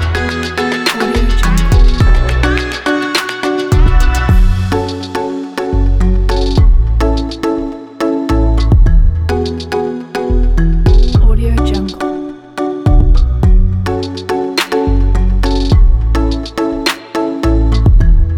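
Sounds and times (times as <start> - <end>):
tropical groove music: 0.0 - 18.3.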